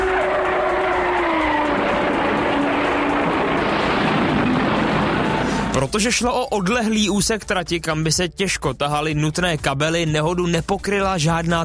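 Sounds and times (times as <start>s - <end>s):
Formula One racing cars roaring past: 0.0s - 5.8s
rough noisy rumble: 0.0s - 5.9s
speech: 5.9s - 11.6s.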